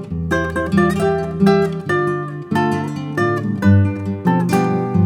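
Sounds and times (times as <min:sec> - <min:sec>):
instrumental backing track without melody: 0:00.3 - 0:05.0.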